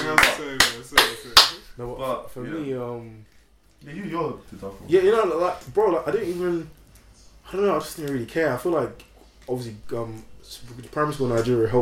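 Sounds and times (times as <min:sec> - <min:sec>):
sharp hand claps: 0:00.0 - 0:01.6
speech: 0:00.4 - 0:06.8, 0:07.5 - 0:11.8.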